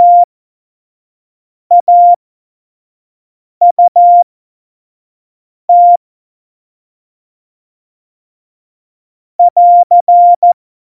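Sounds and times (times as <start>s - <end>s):
CW Morse code beeps: 0.0s - 0.3s, 1.7s - 2.2s, 3.6s - 4.2s, 5.7s - 6.0s, 9.4s - 10.6s.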